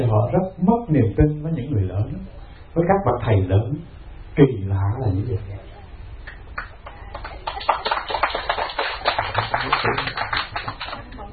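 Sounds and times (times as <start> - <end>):
speech: 0.0 - 5.6
audience clapping at a Buddhist dharma talk: 6.3 - 11.3.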